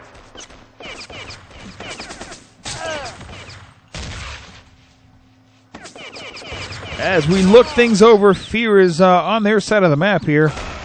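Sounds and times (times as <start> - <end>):
rapid gunfire in a video game match: 0.0 - 4.6, 5.8 - 7.9
speech: 7.0 - 10.6.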